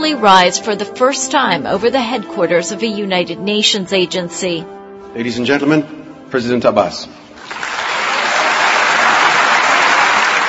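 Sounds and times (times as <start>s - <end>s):
speech: 0.0s - 7.6s
thunderous applause from a large gathered audience: 7.4s - 10.4s.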